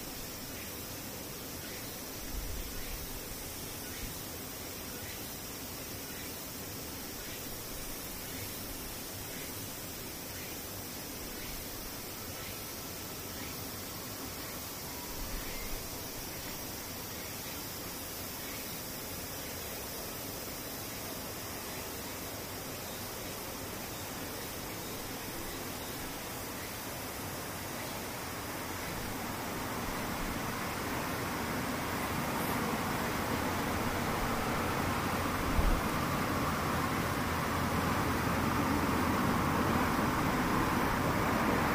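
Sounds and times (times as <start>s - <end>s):
cicadas droning: 0.0s - 41.7s.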